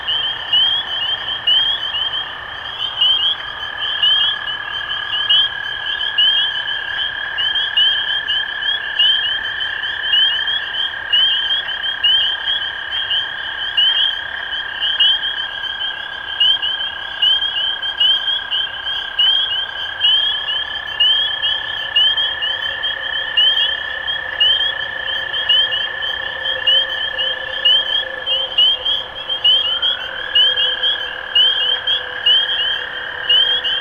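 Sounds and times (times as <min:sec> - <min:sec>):
spring peepers peeping chorus: 0:00.0 - 0:33.7
trilling drone: 0:21.2 - 0:33.7.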